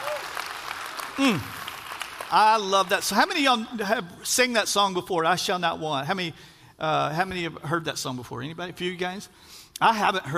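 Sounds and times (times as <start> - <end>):
short cheer sliding downward in pitch: 0.0 - 0.4, 1.2 - 1.7
audience applause: 0.0 - 2.9
speech: 1.2 - 1.6, 2.3 - 10.3.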